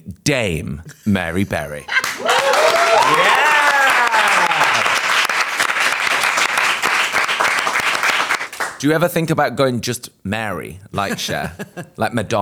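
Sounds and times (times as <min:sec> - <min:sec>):
speech: 0:00.2 - 0:02.0, 0:02.9 - 0:03.4, 0:08.8 - 0:12.4
laughter: 0:00.9 - 0:05.2, 0:11.0 - 0:12.0
whoops and cheering: 0:01.9 - 0:05.1
audience applause: 0:01.9 - 0:08.8.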